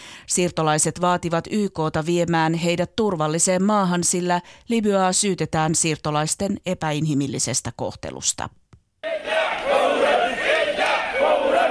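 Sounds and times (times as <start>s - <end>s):
speech: 0.3s - 8.6s
protesters shouting slogans in Arabic: 9.0s - 11.6s.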